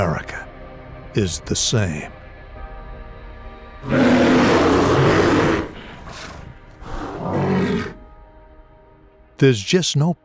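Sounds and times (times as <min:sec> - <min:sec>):
speech: 0:00.0 - 0:00.3, 0:01.2 - 0:02.2, 0:03.8 - 0:04.1, 0:09.4 - 0:10.2
bear growling: 0:03.8 - 0:08.0.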